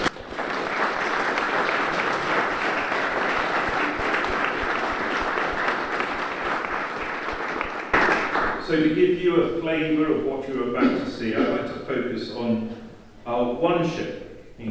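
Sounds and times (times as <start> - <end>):
audience applause: 0.0 - 8.6
speech: 8.7 - 14.6.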